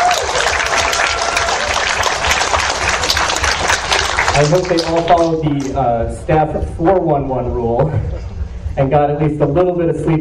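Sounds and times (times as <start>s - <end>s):
audience applause: 0.0s - 5.7s
speech: 4.4s - 10.1s.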